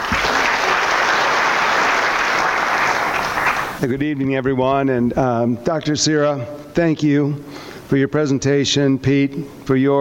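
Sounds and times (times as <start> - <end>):
audience applause: 0.0 - 3.8
speech: 3.8 - 10.0.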